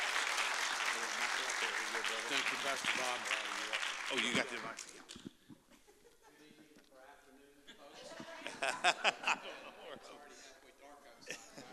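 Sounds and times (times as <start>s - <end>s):
audience applause welcoming speaker: 0.0s - 5.0s
laughter: 1.0s - 3.5s, 7.7s - 10.4s, 11.2s - 11.7s
speech: 1.3s - 5.3s, 8.6s - 10.6s.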